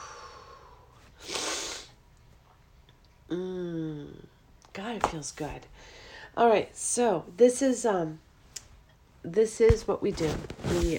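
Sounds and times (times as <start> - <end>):
breathy intake of air: 0.0 - 1.9
speech: 3.3 - 3.6, 5.0 - 8.3, 9.2 - 10.9.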